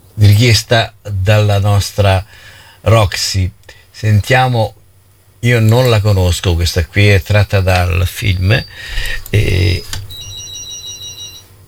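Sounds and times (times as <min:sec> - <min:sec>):
speech: 0:00.2 - 0:04.8, 0:05.4 - 0:10.0
electronic telephone ring: 0:07.4 - 0:11.6
short clicks: 0:08.8 - 0:10.2.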